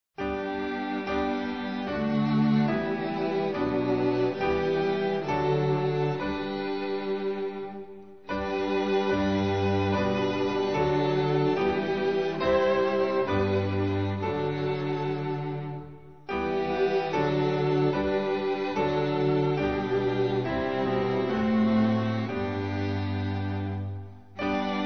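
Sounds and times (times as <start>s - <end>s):
instrumental hymn: 0.2s - 24.8s.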